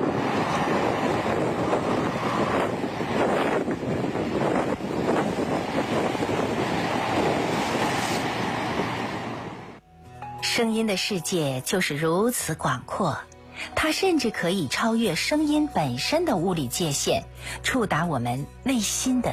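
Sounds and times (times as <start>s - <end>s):
sandstorm wind buffeting the microphone: 0.0s - 9.8s
speech: 10.6s - 19.3s.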